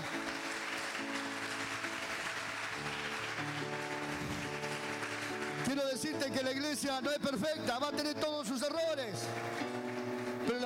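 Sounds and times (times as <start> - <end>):
audience applause: 0.0 - 6.2, 9.2 - 10.6
sustained keyboard chords: 0.0 - 10.6
speech: 5.8 - 9.8.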